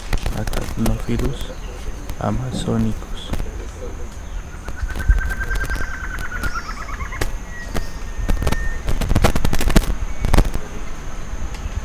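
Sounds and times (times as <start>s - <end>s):
clicks: 0.0s - 10.6s
speech: 0.4s - 3.4s
bird calling with rattling trill: 4.2s - 8.9s.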